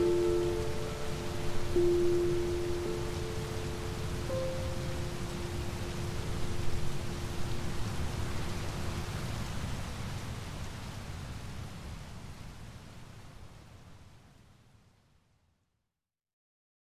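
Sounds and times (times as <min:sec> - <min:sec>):
calming piano music: 0:00.0 - 0:09.1
waterfall: 0:00.0 - 0:15.0
rain: 0:00.0 - 0:15.4.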